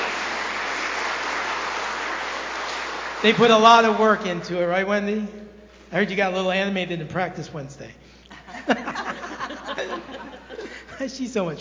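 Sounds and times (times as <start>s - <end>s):
audience applause: 0.0s - 3.6s
speech: 3.2s - 11.5s
laughter: 8.3s - 11.3s.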